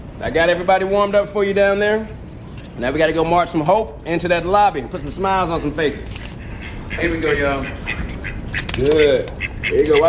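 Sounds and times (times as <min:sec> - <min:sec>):
speech: 0:00.2 - 0:02.2, 0:02.8 - 0:06.2, 0:06.9 - 0:08.0, 0:08.8 - 0:10.0
ducks quacking: 0:06.4 - 0:10.0.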